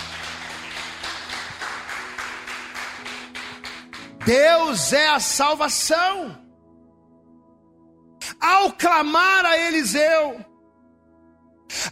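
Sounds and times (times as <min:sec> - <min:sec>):
audience clapping in a steady rhythmic beat: 0:00.0 - 0:04.4
speech: 0:04.2 - 0:06.4, 0:08.5 - 0:10.5.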